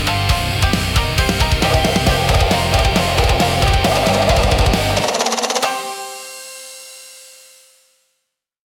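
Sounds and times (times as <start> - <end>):
intense Japanese rock music: 0.0 - 6.2.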